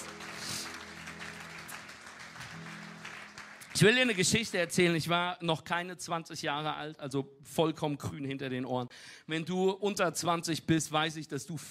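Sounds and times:
audience applause: 0.0s - 4.4s
speech: 3.8s - 11.6s.

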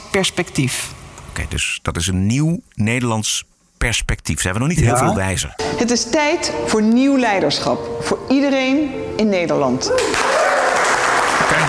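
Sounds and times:
speech: 0.2s - 10.3s, 11.5s - 11.6s
crowd clapping: 10.0s - 11.6s.

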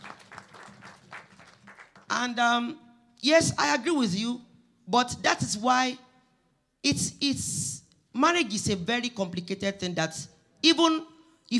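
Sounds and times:
audience clapping: 0.0s - 2.2s
speech: 2.1s - 6.0s, 6.8s - 11.5s.

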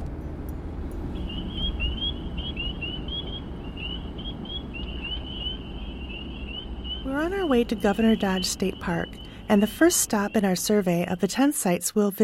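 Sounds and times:
low rumbling background: 0.0s - 11.6s
chorus of spring peeper frogs peeping: 1.2s - 11.5s
speech: 7.1s - 12.2s.

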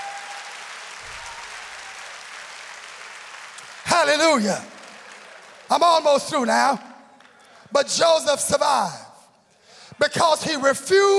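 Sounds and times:
audience clapping hands: 0.0s - 7.8s
speech: 4.0s - 4.7s, 5.7s - 6.9s, 7.7s - 9.0s, 9.9s - 11.1s.

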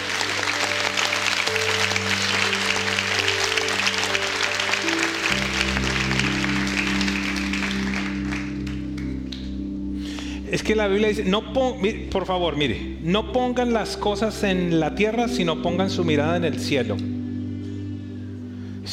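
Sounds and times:
audience applause: 0.0s - 9.4s
low musical chords: 0.0s - 18.9s
speech: 10.6s - 17.1s.

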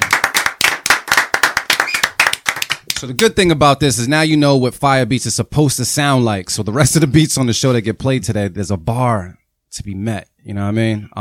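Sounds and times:
small group clapping: 0.0s - 3.3s
speech: 3.0s - 11.1s.

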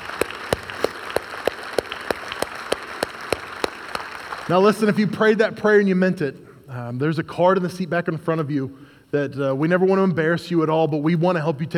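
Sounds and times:
audience applause: 0.0s - 4.6s
speech: 4.5s - 11.7s.

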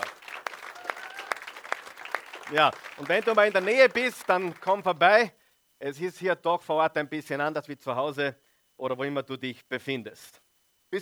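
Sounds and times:
audience applause: 0.0s - 4.8s
speech: 2.5s - 11.0s.

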